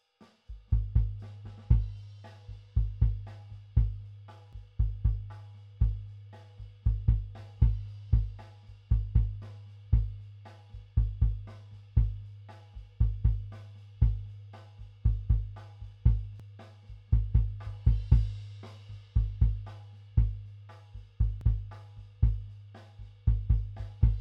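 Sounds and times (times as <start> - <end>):
kick drum: 0.7 - 2.0, 2.8 - 4.1, 4.8 - 6.2, 6.8 - 10.3, 10.9 - 12.3, 12.9 - 14.3, 15.0 - 16.4, 17.1 - 18.4, 19.2 - 20.5, 21.2 - 22.5, 23.3 - 24.1.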